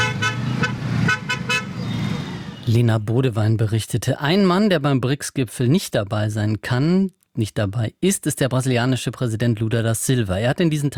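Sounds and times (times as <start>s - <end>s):
car horns honking in traffic chaos: 0.0s - 2.5s
road traffic rumble: 0.0s - 2.8s
speech: 2.7s - 10.9s.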